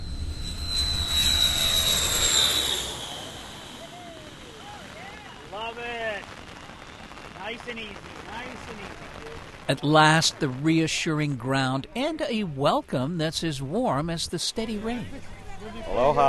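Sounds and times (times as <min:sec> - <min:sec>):
small airplane landing on coral airstrip: 0:00.0 - 0:04.8
speech: 0:09.7 - 0:15.4, 0:16.0 - 0:16.2.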